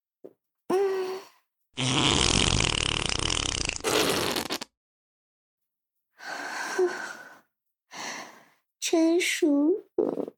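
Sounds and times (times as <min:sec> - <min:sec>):
fart: 0:01.8 - 0:04.7, 0:10.0 - 0:10.3
speech: 0:08.9 - 0:10.3.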